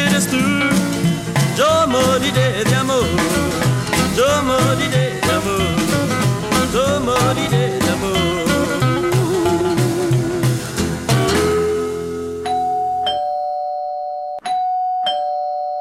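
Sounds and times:
music playing: 0.0s - 13.2s
doorbell chiming at a gathering: 12.3s - 15.7s.

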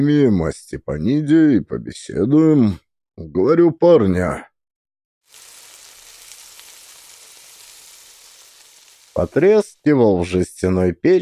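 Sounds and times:
speech: 0.0s - 4.5s, 9.2s - 11.2s
meat sizzling in a hot pan: 5.2s - 9.6s.

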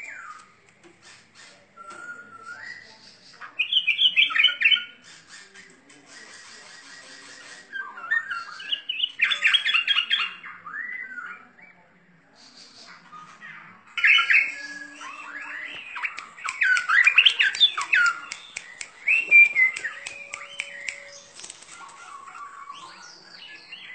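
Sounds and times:
bird twittering song: 0.0s - 5.8s, 6.4s - 23.9s
sharp ticking clicks: 16.0s - 21.6s.

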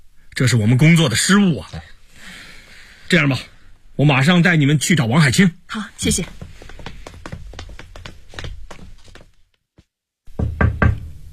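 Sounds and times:
speech: 0.4s - 1.9s, 3.1s - 6.5s
police knocking on a door: 10.3s - 11.1s.

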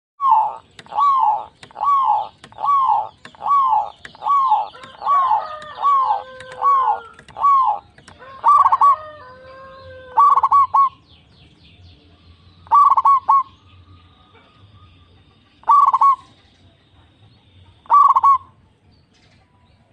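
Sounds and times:
zebra dove cooing: 0.2s - 11.0s, 12.7s - 13.5s, 15.6s - 16.2s, 17.8s - 18.6s.

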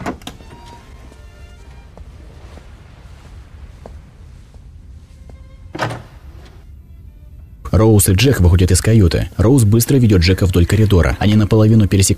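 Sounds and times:
door closing: 0.0s - 1.0s, 5.6s - 6.7s
speech: 7.7s - 12.1s.

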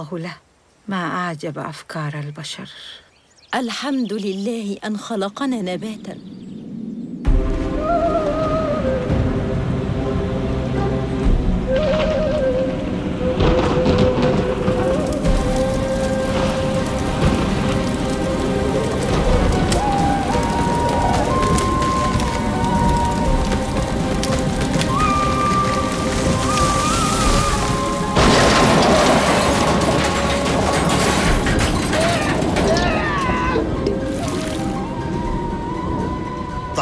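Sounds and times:
speech: 0.0s - 6.5s
thunder rumbles and crashes: 7.2s - 10.3s, 11.2s - 36.0s
heavy rain hissing and pattering: 7.3s - 36.8s.

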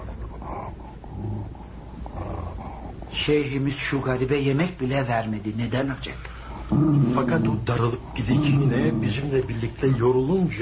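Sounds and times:
dog growling: 0.0s - 4.2s, 6.5s - 10.0s
speech: 3.2s - 10.6s.

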